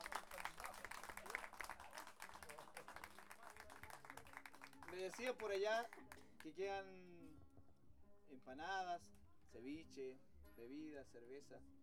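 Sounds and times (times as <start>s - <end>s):
audience applause: 0.0s - 5.4s
speech: 4.9s - 7.2s, 8.3s - 11.7s.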